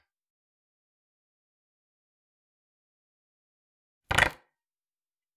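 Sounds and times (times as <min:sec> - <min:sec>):
wooden pallet sounds: 0:04.1 - 0:04.4.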